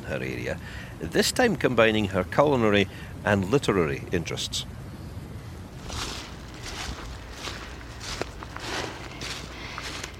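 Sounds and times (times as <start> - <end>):
speech: 0.1 - 4.8
soft crunching footsteps walking into woods in the Pentland Hills: 5.7 - 10.1.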